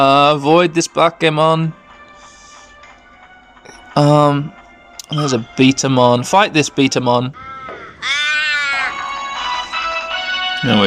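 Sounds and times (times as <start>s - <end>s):
speech: 0.0s - 1.8s, 4.0s - 7.4s, 8.0s - 8.2s, 10.6s - 10.8s
person's voice imitating crow caw: 7.3s - 9.1s.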